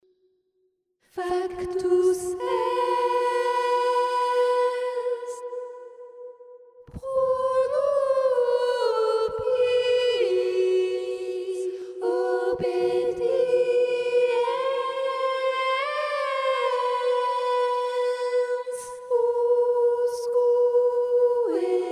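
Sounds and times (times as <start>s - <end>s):
soprano singing: 1.2s - 6.2s, 6.9s - 21.9s.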